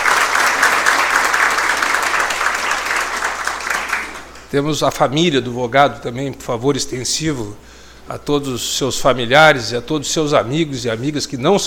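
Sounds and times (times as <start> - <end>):
audience applause: 0.0 - 4.4
speech: 4.5 - 11.6.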